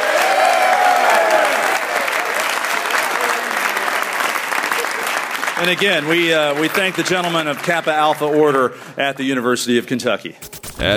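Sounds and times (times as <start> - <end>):
audience applause: 0.0 - 7.9
speech: 5.6 - 10.9.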